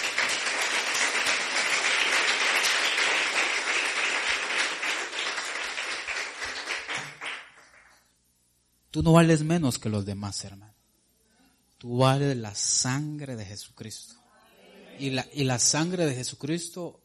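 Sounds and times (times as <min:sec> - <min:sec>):
audience applauding: 0:00.0 - 0:08.0
speech: 0:08.9 - 0:10.8, 0:11.8 - 0:14.2, 0:15.0 - 0:17.0.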